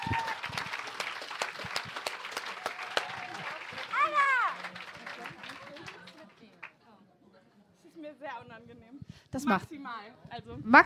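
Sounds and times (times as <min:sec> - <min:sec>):
audience applause: 0:00.0 - 0:06.7
speech: 0:09.4 - 0:09.8, 0:10.5 - 0:10.8.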